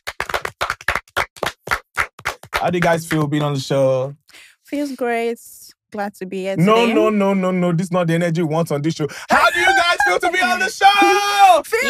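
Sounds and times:
guests applauding: 0.0 - 3.7, 9.4 - 11.8
speech: 2.6 - 11.8
laughter: 6.6 - 7.8, 9.1 - 11.8.

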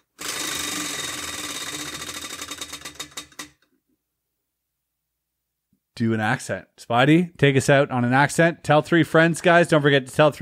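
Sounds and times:
prize wheel spinning and clicking: 0.0 - 3.6
speech: 6.0 - 10.3.

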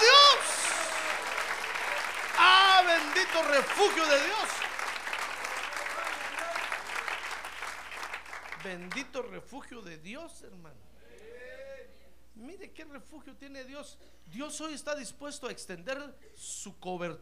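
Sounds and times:
audience applause: 0.0 - 8.7
speech: 3.4 - 4.7, 8.6 - 10.9, 12.4 - 17.2.

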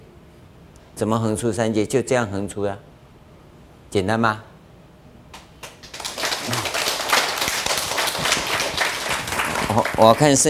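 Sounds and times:
speech: 1.0 - 2.9, 3.9 - 4.5, 9.8 - 10.4
audience clapping: 5.4 - 10.4.

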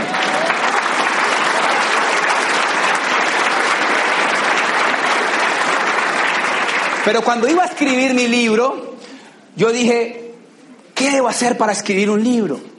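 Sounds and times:
audience applause: 0.0 - 7.8
speech: 7.1 - 8.9, 9.6 - 10.2, 11.0 - 12.7.

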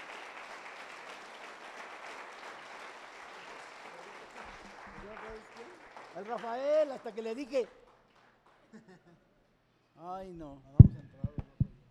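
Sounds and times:
audience applause: 0.0 - 8.8
speech: 5.3 - 7.8, 10.0 - 11.0
laughter: 8.7 - 9.4.

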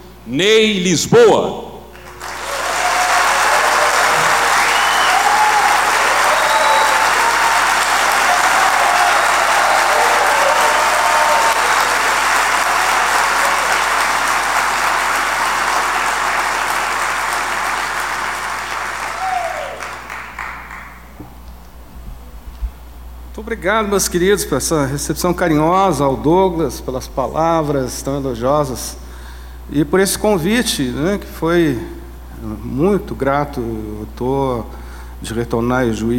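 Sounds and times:
speech: 0.2 - 1.6, 23.6 - 29.0, 29.7 - 36.1
large crowd clapping in a university hall: 1.9 - 21.4.

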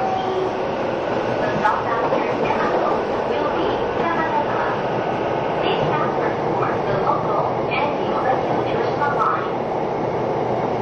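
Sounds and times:
Sotetsu 12000 series train running rumble: 0.0 - 10.8
voices: 1.4 - 4.9, 5.6 - 9.6.

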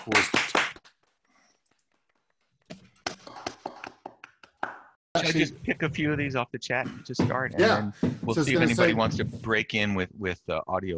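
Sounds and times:
speech: 0.0 - 0.5, 5.2 - 10.9
audience round of applause: 0.0 - 1.0.

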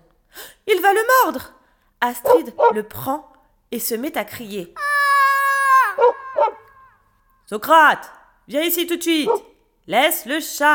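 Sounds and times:
speech: 0.8 - 4.8, 7.5 - 10.7
neighbours' dog barking: 2.3 - 2.9, 6.0 - 6.9, 9.2 - 9.5.

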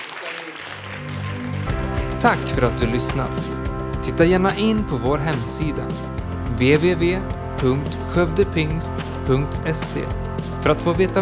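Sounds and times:
warm audience applause: 0.0 - 5.5
sustained musical tone: 1.1 - 11.1
speech: 2.2 - 11.1.

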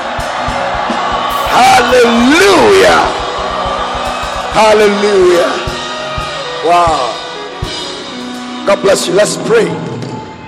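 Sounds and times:
audience screaming: 0.0 - 8.6, 9.7 - 10.4
low rhythmic thumps: 0.0 - 8.7
speech: 1.5 - 3.2, 4.6 - 5.6, 6.6 - 7.1, 8.7 - 9.9.

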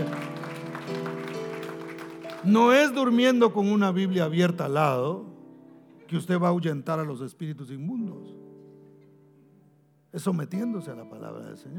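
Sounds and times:
audience applause: 0.0 - 3.0
speech: 2.4 - 5.3, 6.1 - 8.4, 10.1 - 11.7.

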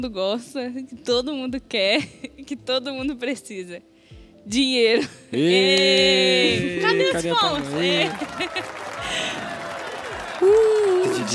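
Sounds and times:
speech: 0.0 - 8.6, 10.5 - 11.3
laughter: 5.4 - 11.3
long applause: 6.7 - 11.3.

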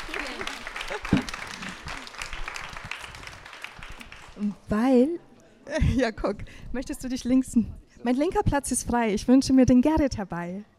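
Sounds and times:
audience applause: 0.0 - 4.5
speech: 4.4 - 10.7.

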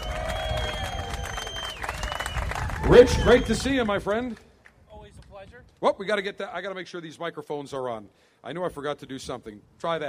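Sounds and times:
cheering: 0.0 - 4.0
crowd clapping for guests from Davidoff and AVO: 0.0 - 4.8
speech: 2.9 - 4.5, 5.5 - 10.0.

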